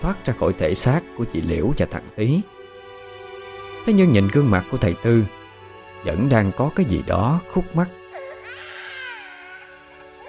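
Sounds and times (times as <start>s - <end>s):
speech: 0.0s - 2.6s, 3.9s - 5.4s, 6.0s - 8.0s
mournful wailing cry: 8.1s - 10.2s.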